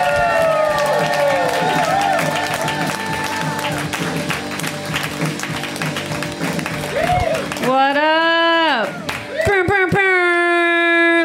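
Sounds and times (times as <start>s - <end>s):
whoops and shouts: 0.0s - 3.8s, 6.9s - 7.5s
crowd applauding and cheering: 0.0s - 10.4s.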